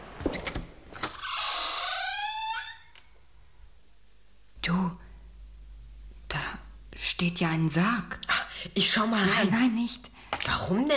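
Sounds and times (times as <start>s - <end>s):
hidden door creaking groan: 0.1s - 3.3s
speech: 7.2s - 10.9s.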